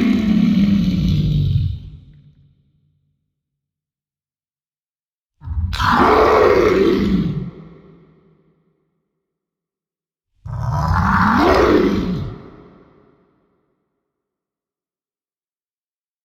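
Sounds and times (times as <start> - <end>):
monster screaming: 0.0 - 2.2, 5.5 - 7.6, 10.6 - 12.9.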